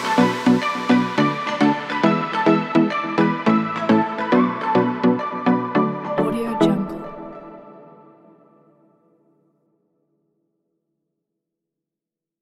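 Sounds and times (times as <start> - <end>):
summer tropical pop music: 0.0 - 8.2.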